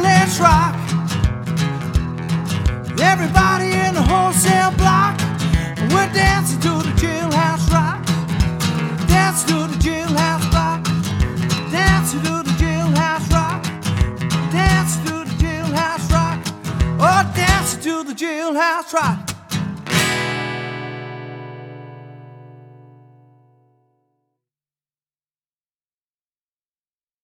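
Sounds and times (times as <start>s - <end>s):
person singing: 0.0s - 1.1s, 3.0s - 11.0s, 11.6s - 13.7s, 14.4s - 19.4s
solo acoustic guitar: 0.0s - 24.0s.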